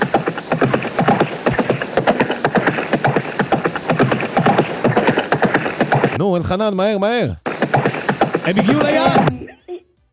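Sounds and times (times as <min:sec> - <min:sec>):
galloping horse hooves: 0:00.0 - 0:06.2, 0:07.5 - 0:09.3
speech: 0:06.2 - 0:07.4, 0:08.4 - 0:09.5.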